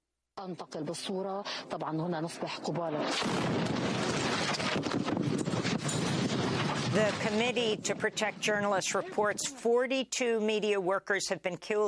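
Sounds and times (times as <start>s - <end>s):
speech: 0.4s - 5.8s, 6.9s - 11.8s
Israeli artillery fire striking near journalists at the Lebanese border: 2.9s - 9.1s.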